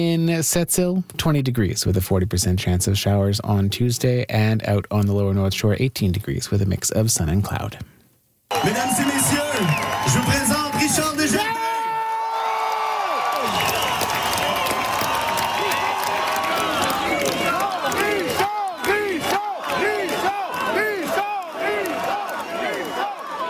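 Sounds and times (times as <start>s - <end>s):
speech: 0.0s - 8.0s, 8.6s - 9.7s
fans cheering at the closing show of a music festival: 8.5s - 23.4s
fans whooping and shouting: 8.5s - 23.4s.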